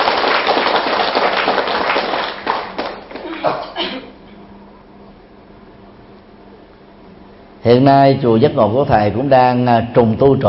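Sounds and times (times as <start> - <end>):
applause: 0.0 - 3.6
speech: 7.7 - 10.4.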